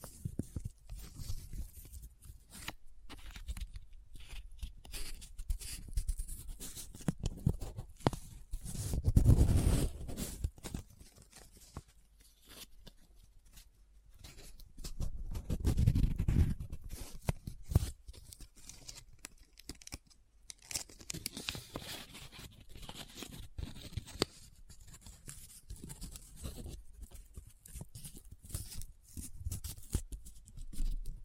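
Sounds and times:
paper crinkling and scratching: 0:00.0 - 0:31.0.

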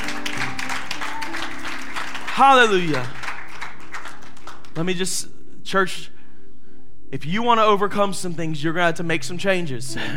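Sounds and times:
audience clapping hands in praise: 0:00.0 - 0:05.0
speech: 0:02.4 - 0:03.2, 0:04.8 - 0:06.1, 0:07.1 - 0:10.1.

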